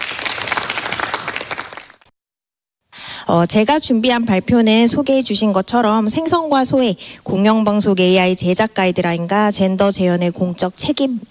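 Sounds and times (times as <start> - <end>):
audience applauding: 0.0 - 2.1
speech: 3.3 - 11.2.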